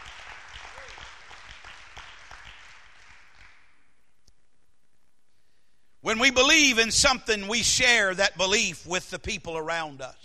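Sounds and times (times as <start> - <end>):
crowd applauding: 0.0 - 3.8
speech: 6.1 - 10.2.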